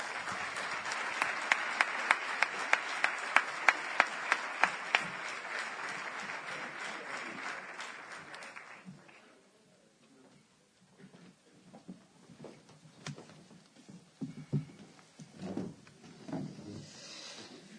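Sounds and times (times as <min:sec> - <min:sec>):
audience applause: 0:00.0 - 0:09.3.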